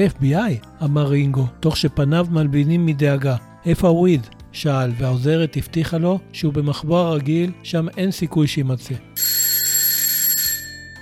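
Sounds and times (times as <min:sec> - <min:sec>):
speech: 0:00.0 - 0:09.3
doorbell ringing at an apartment door: 0:09.2 - 0:11.0.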